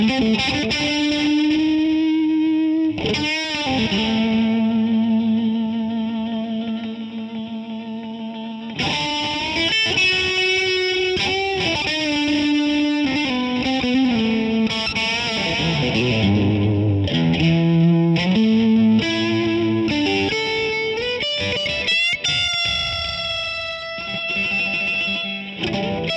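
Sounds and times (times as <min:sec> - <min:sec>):
Strat Classic electric guitar: 0:00.0 - 0:26.1.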